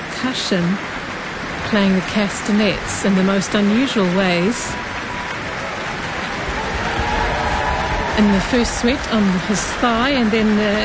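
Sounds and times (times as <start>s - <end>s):
speech: 0.2s - 1.0s, 1.7s - 4.8s, 8.2s - 10.8s
concert audience applause: 4.0s - 10.8s.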